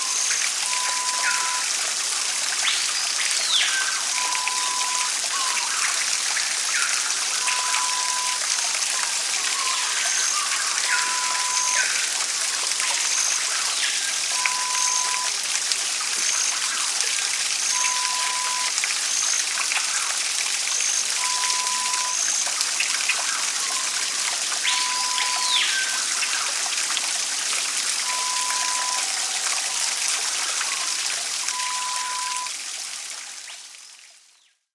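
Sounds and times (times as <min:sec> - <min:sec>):
rainforest ambience: 0:00.0 - 0:34.7.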